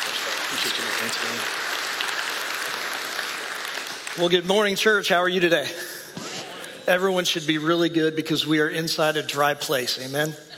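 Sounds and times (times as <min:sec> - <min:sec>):
audience applause: 0:00.0 - 0:04.4
speech: 0:00.5 - 0:01.7, 0:04.2 - 0:05.9, 0:06.9 - 0:10.5.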